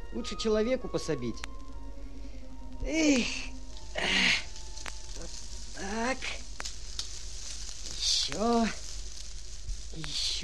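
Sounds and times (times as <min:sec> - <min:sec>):
speech: 0:00.1 - 0:01.6, 0:02.8 - 0:04.4, 0:05.8 - 0:06.4, 0:08.3 - 0:08.8, 0:10.0 - 0:10.4
fire sizzling out as it is smothered: 0:00.9 - 0:10.4
brief rising-and-falling voiced sound: 0:02.4 - 0:10.4.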